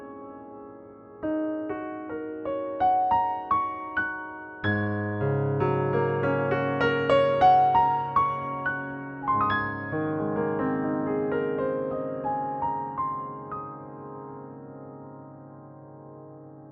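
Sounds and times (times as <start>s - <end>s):
classical prelude on a Steinway D piano in New York: 0.0s - 16.7s.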